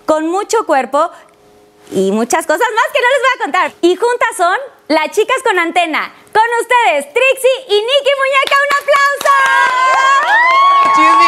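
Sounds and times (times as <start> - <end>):
speech: 0.1 - 11.2
audience clapping: 8.4 - 11.2
audience whooping and shouting: 9.1 - 11.2.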